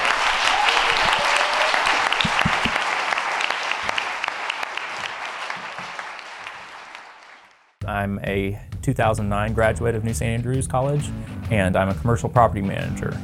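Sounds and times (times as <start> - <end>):
audience applause for a speaker: 0.0 - 7.8
speech: 8.0 - 13.2.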